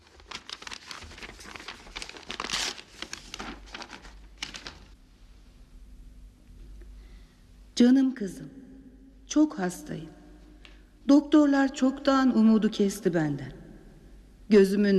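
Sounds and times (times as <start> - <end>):
paper envelope from a jewellery box crinkling and tearing: 0.0 - 5.0
faint steady hum: 0.0 - 14.9
speech: 7.8 - 8.6, 9.3 - 10.2, 11.1 - 13.6, 14.5 - 14.9.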